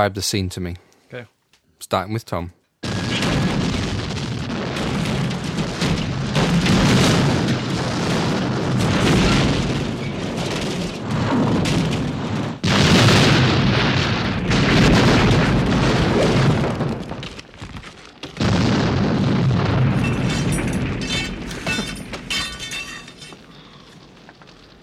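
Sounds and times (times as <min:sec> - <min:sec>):
speech: 0:00.0 - 0:02.6
roaring booms in a dropship crash film sound effect: 0:02.8 - 0:24.8
rumbling explosions in a dropship crash: 0:02.8 - 0:24.8
shattering debris in a dropship crash: 0:03.1 - 0:24.8.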